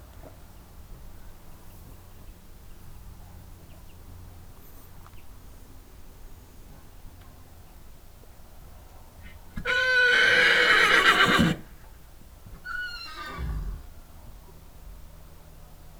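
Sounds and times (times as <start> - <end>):
horse neighing: 9.6 - 11.7, 12.6 - 13.9.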